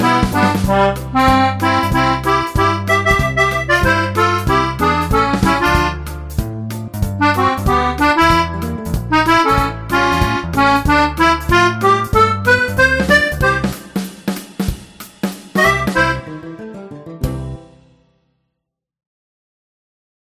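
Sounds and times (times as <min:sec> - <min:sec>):
Hohner accordion: 0:00.0 - 0:14.8, 0:15.6 - 0:17.0.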